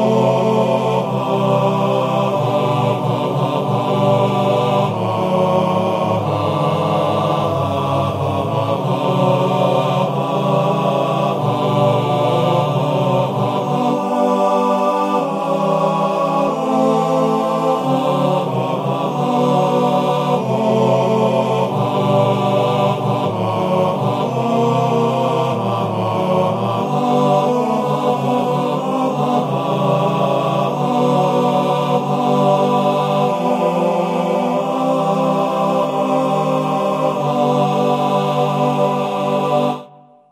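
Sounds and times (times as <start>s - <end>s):
barbershop quartet singing: 0.0s - 39.9s.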